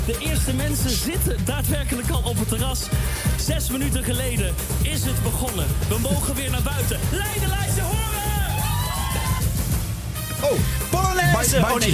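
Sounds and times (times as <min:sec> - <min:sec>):
speech: 0:00.0 - 0:08.2, 0:10.4 - 0:11.9
crowd cheering played from tape: 0:06.3 - 0:11.9.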